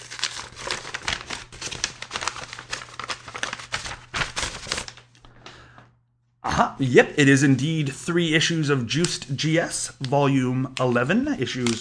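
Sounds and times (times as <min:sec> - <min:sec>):
paper mailing envelope holding magazine back issues ripped open: 0:00.0 - 0:05.2, 0:09.9 - 0:11.7
speech: 0:06.6 - 0:11.7.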